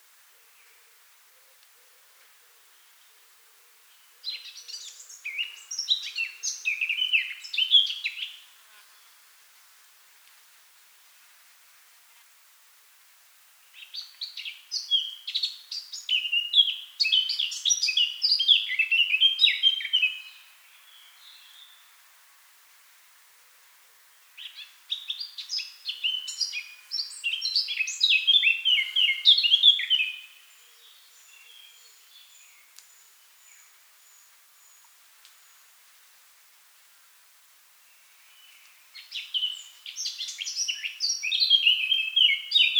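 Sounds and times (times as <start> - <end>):
Eurasian blackcap song: 3.9 - 9.2, 13.7 - 22.0, 24.2 - 35.8, 37.7 - 42.7.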